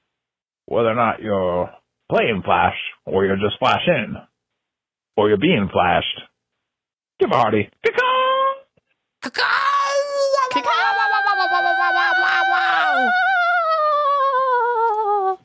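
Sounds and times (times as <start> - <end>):
speech: 0.7 - 4.3, 5.2 - 6.3, 7.2 - 8.0
person loudly imitating crow cawing: 9.2 - 15.4.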